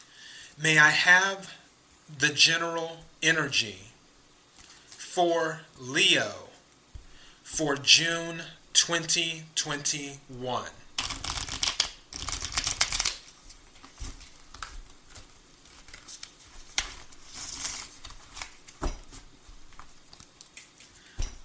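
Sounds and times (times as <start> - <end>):
speech: 0.6 - 3.9, 5.2 - 6.5, 7.5 - 10.8
tarot cards shuffled and drawn for a reading: 11.0 - 21.4.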